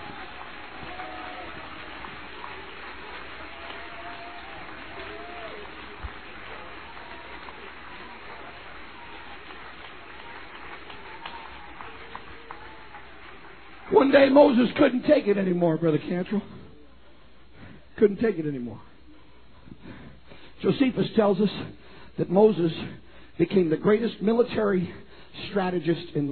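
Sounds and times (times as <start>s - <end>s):
murmuring voices: 0.0s - 14.1s
audience applauding: 0.0s - 15.4s
speech: 14.0s - 16.6s, 18.0s - 18.9s, 20.6s - 26.3s.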